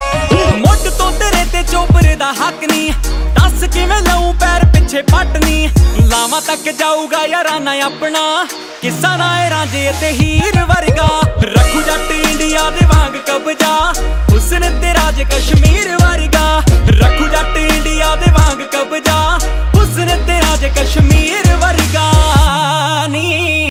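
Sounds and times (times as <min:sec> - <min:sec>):
Desi Punjabi ringtone music: 0:00.0 - 0:23.6.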